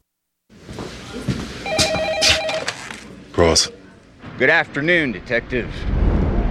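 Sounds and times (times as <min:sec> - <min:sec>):
telephone ringing in a scene from the film Alex Cross: 0:01.6 - 0:03.0
speech: 0:03.4 - 0:03.8, 0:04.4 - 0:05.9.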